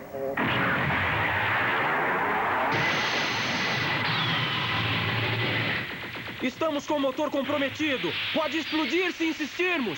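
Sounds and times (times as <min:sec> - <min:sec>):
speech: 0:00.1 - 0:00.7, 0:06.4 - 0:09.9
fully charged energy cannon firing: 0:00.4 - 0:08.5.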